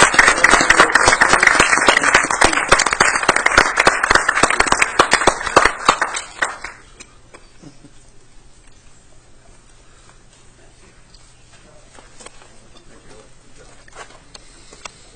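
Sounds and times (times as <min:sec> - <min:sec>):
round of applause at a council meeting: 0:00.0 - 0:06.9.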